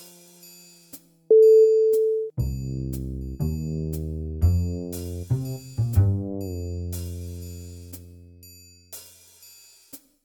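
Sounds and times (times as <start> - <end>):
mystery bass: 2.0 - 8.4.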